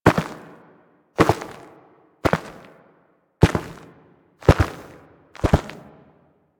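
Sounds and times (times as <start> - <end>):
footsteps walking forward in a forest at night: 0.0 - 0.4, 1.2 - 2.7, 3.4 - 5.9.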